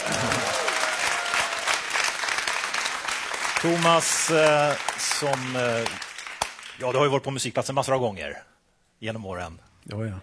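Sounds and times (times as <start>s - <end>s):
audience applause: 0.0s - 6.9s
speech: 3.6s - 6.1s, 6.8s - 10.2s.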